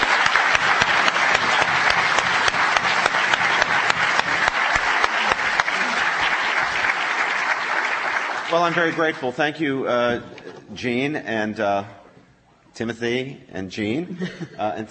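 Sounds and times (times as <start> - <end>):
audience clapping: 0.0 - 9.6
speech: 8.5 - 12.0, 12.8 - 14.8.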